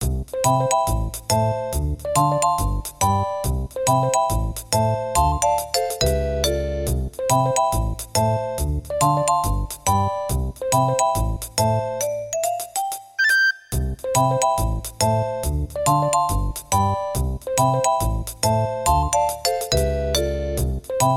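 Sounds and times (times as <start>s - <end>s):
background music: 0.2s - 21.1s.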